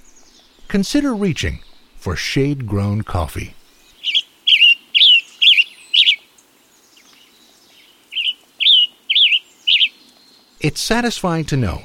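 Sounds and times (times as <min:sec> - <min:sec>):
tanager singing: 0:00.0 - 0:10.7
speech: 0:00.7 - 0:03.6, 0:10.6 - 0:11.8.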